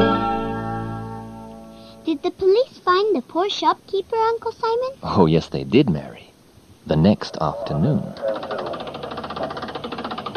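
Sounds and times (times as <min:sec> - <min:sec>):
speech: 0:02.0 - 0:08.7
car engine running as car pulls up: 0:08.2 - 0:10.3.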